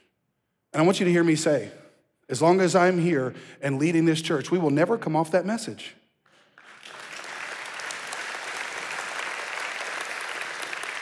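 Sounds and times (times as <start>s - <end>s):
speech: 0.7s - 6.0s
audience applause: 6.5s - 10.9s.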